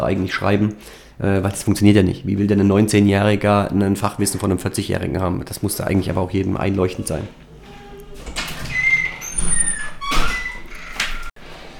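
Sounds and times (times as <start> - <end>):
speech: 0.0 - 7.4
door opening with a drawn-out creak and squeak: 6.9 - 11.4
door shutting thunk: 7.7 - 11.2.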